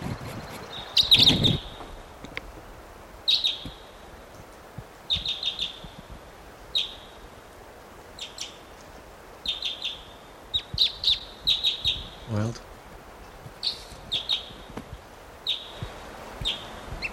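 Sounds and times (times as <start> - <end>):
wild bird singing: 0.4 - 1.9, 3.2 - 3.9, 5.1 - 6.0, 6.7 - 7.2, 8.2 - 8.7, 9.4 - 12.4, 13.2 - 14.7, 15.4 - 17.1.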